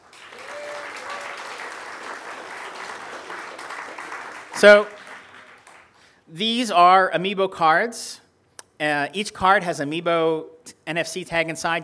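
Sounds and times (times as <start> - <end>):
audience applause: 0.0 - 6.0
faint whoops and voices: 0.3 - 1.6
speech: 4.6 - 5.0, 6.3 - 8.2, 8.8 - 11.8.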